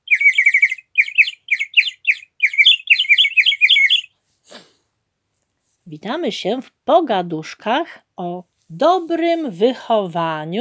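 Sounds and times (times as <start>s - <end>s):
clay rooster toy whistle trilling: 0.0s - 4.1s
speech: 5.9s - 10.5s.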